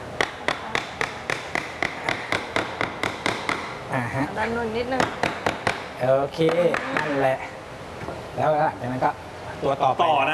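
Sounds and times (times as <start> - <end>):
hammer striking the top of a wooden joint piece: 0.2 - 3.8, 5.0 - 7.1
speech: 4.4 - 5.3, 6.0 - 7.5, 8.4 - 10.3.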